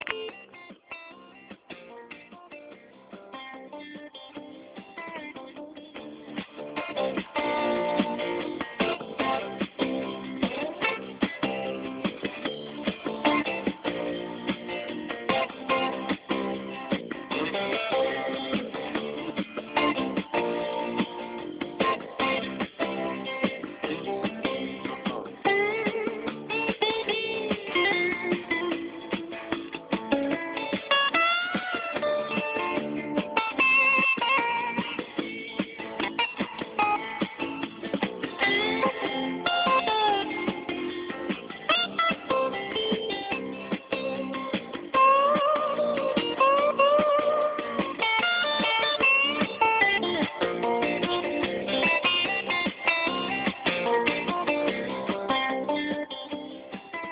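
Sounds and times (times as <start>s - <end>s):
1980s pop-rock music: 0.0s - 57.0s.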